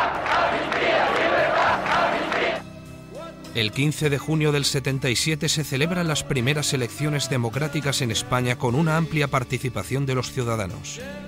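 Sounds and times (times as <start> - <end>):
protest crowd chanting slogans for amnesty and freedom: 0.0 - 2.6
speech: 3.6 - 11.2.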